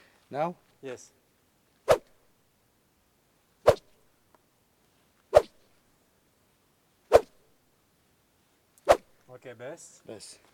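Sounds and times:
arrow cutting through the air: 1.9 - 2.2, 3.6 - 4.0, 5.3 - 5.6, 7.1 - 7.4, 8.8 - 9.1.

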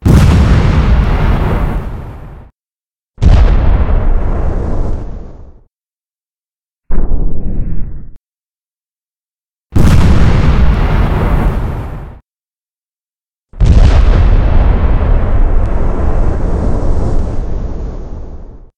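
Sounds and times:
explosions: 0.0 - 2.5, 3.2 - 5.7, 6.9 - 8.2, 9.8 - 12.2, 13.6 - 18.7.

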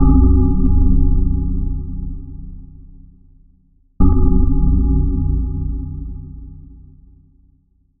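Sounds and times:
dark clock tower bell: 0.0 - 3.3, 4.0 - 7.1.

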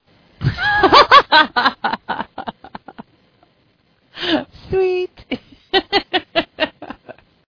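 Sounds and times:
person laughing sweetly: 0.4 - 3.1, 5.3 - 7.3.

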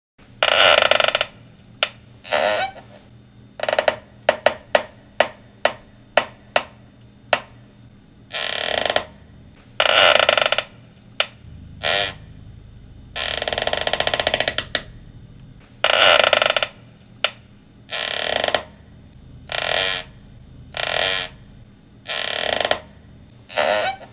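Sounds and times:
chair creaking: 0.4 - 5.8, 8.3 - 9.2, 9.8 - 12.2, 13.2 - 14.9, 15.8 - 18.8, 19.5 - 21.4, 22.0 - 24.1.

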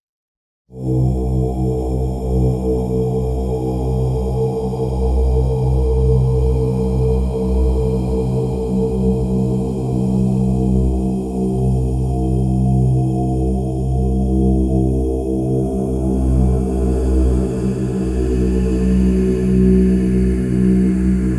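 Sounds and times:
Tibetan chant stretched with bassy tail: 0.8 - 21.3.

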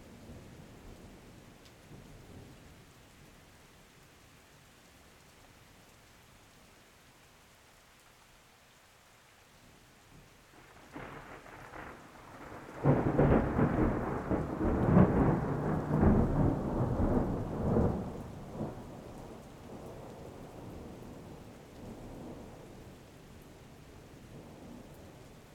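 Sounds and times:
storm: 10.6 - 22.6.

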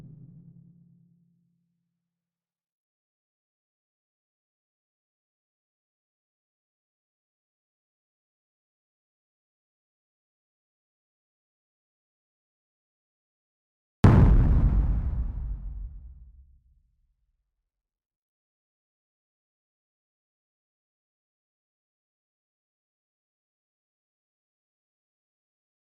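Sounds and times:
clean explosions: 14.1 - 16.7.

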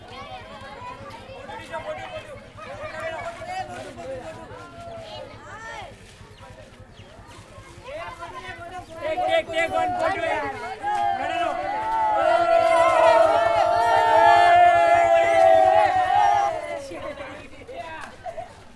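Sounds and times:
kids fooling around outside shouting ohhhh in India: 0.0 - 3.9, 7.6 - 17.4.

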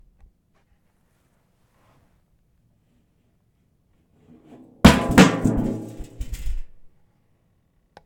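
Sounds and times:
metal dropping: 4.3 - 6.6.

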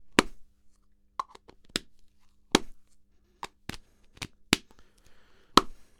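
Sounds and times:
tennis ball hit back and forth: 0.1 - 0.4, 2.5 - 2.8, 5.6 - 5.8.

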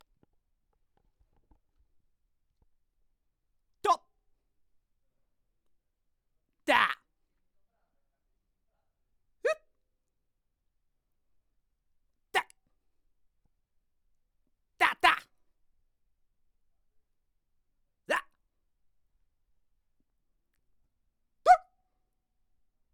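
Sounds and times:
frustrated vocal sounds: 6.7 - 7.0, 14.8 - 15.3, 18.1 - 18.3.

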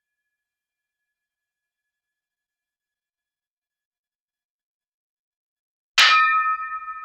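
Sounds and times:
sword clang ringing with long tail: 6.0 - 6.9.

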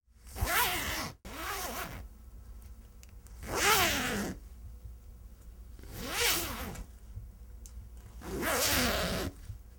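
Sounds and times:
zipper: 0.3 - 2.0, 3.4 - 4.4, 5.8 - 6.8, 8.2 - 9.4.

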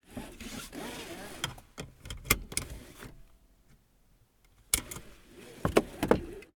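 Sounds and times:
seat belt: 0.0 - 3.2, 4.7 - 6.5.

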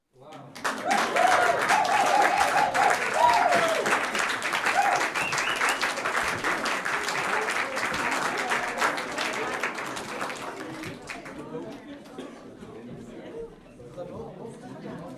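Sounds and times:
small audience clapping: 0.3 - 11.8.

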